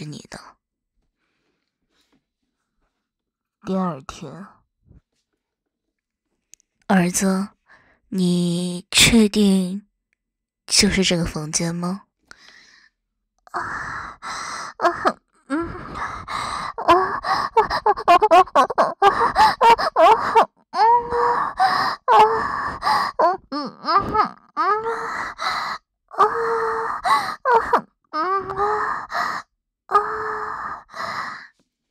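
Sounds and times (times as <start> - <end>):
speech: 3.6 - 4.6, 6.9 - 9.9, 10.7 - 12.1, 13.5 - 15.2, 17.6 - 25.6
woman sexual moaning: 13.5 - 25.4, 26.1 - 31.0.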